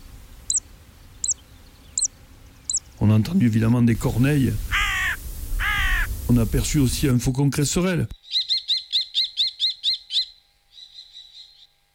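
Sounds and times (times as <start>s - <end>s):
zitting cisticola calling zit: 0.0s - 2.9s, 4.7s - 6.2s, 8.2s - 11.8s
speech: 3.0s - 4.7s, 6.3s - 8.2s.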